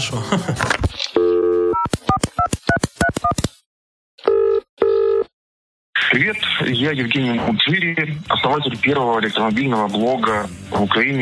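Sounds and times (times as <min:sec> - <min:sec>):
speech: 0:00.0 - 0:01.0, 0:06.1 - 0:11.1
phone keypad beeps: 0:01.2 - 0:03.4
phone dial tone: 0:04.2 - 0:05.3.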